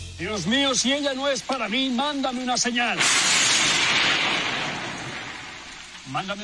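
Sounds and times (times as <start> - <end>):
speech: 0.2 - 3.8, 6.1 - 6.4
thunder clap: 3.0 - 5.8.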